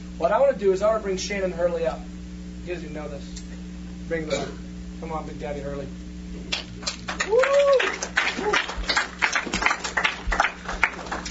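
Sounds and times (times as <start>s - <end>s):
speech: 0.2s - 3.5s, 4.1s - 8.8s
audience clapping: 6.5s - 11.3s.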